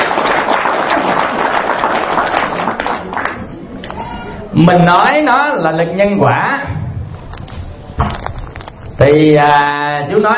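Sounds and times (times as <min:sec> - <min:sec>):
audience applause: 0:00.0 - 0:03.5
speech: 0:04.6 - 0:06.6, 0:09.0 - 0:10.3.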